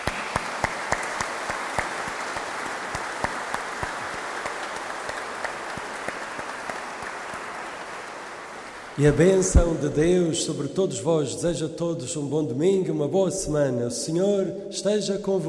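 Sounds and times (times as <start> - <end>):
applause: 0.0 - 10.2
speech: 9.0 - 15.4.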